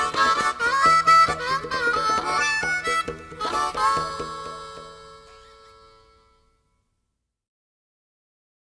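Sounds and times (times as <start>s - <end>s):
harmonica: 0.0s - 6.8s.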